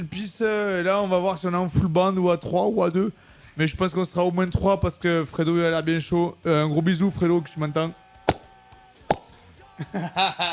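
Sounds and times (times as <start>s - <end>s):
speech: 0.0s - 8.0s, 9.8s - 10.5s
cork popping from a bottle of cheap red wine: 8.3s - 8.5s, 9.1s - 9.4s
laughter: 9.7s - 10.5s.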